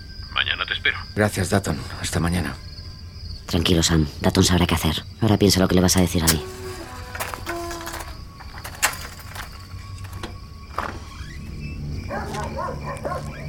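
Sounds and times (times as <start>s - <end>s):
speech: 0.4s - 2.7s, 3.5s - 6.6s
dog barking and yelping: 12.1s - 13.4s.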